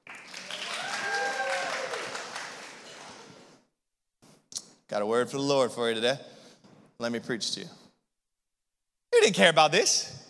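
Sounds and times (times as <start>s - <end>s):
audience clapping: 0.0s - 3.6s
speech: 4.9s - 6.3s, 7.0s - 7.8s, 9.2s - 10.2s.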